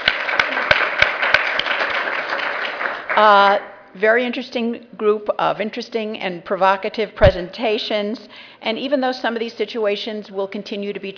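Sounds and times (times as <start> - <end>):
audience applause for panelists: 0.0 - 3.4
person clapping loudly: 0.0 - 3.4
speech: 3.2 - 11.1.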